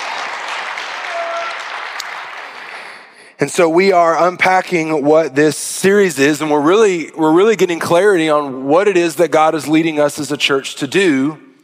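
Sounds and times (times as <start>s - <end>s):
church congregation applauding: 0.0s - 3.3s
speech: 3.4s - 11.4s.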